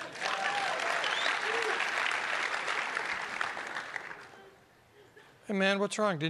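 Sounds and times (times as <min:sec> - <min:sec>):
crowd applauding: 0:00.0 - 0:04.4
speech: 0:05.5 - 0:06.2.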